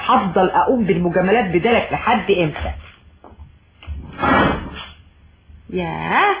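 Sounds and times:
speech: 0.1s - 2.9s, 5.7s - 6.3s
desk drawer sliding open in a radio drama: 3.9s - 4.9s.

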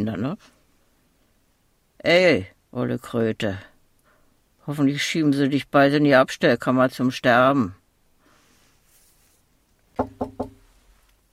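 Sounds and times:
speech: 0.0s - 0.6s, 2.0s - 3.7s, 4.7s - 7.8s
faint hiss: 0.0s - 11.3s
firm knocking on a door: 10.0s - 10.6s.

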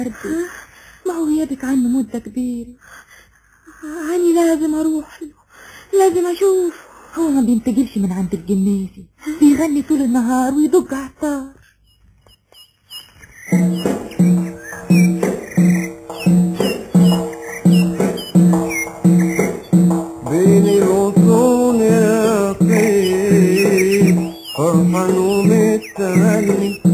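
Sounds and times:
speech: 0.0s - 3.1s, 3.8s - 11.6s
bird-like chirps and warbling whistles: 11.8s - 26.9s
steady low tonal backing: 13.5s - 26.9s.

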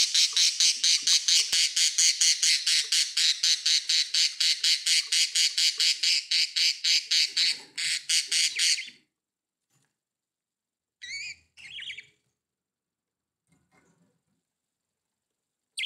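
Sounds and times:
budgerigar chattering in harsh buzzy squawks: 0.0s - 8.9s.

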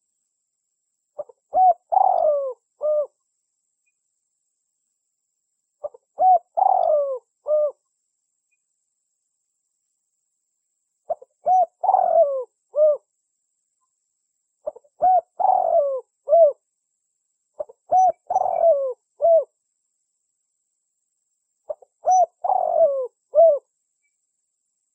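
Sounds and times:
Spotted Dove cooing as a lure call: 1.2s - 3.2s, 5.8s - 7.8s, 11.1s - 13.1s, 14.6s - 16.6s, 17.6s - 19.5s, 21.7s - 23.7s.

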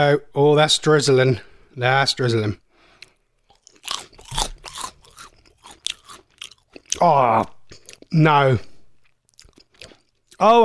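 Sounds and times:
speech: 0.0s - 2.6s, 7.0s - 8.7s, 10.4s - 10.6s
prawn cracker with caramel sauce being bitten and chewed: 3.0s - 8.2s, 9.0s - 10.5s.

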